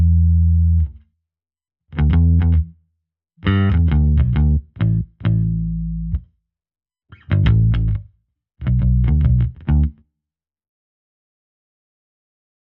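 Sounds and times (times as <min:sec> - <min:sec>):
bass: 0:00.0 - 0:01.0, 0:01.9 - 0:02.8, 0:03.4 - 0:06.3, 0:07.1 - 0:10.0.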